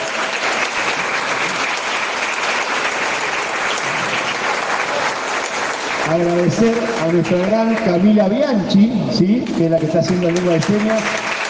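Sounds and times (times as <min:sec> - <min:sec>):
audience applause: 0:00.0 - 0:08.7, 0:09.6 - 0:11.4
speech: 0:06.1 - 0:11.3.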